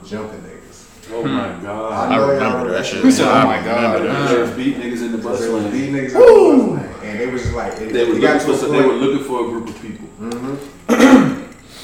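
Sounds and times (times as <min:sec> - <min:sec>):
speech: 0:00.1 - 0:11.3
throat clearing: 0:10.9 - 0:11.5.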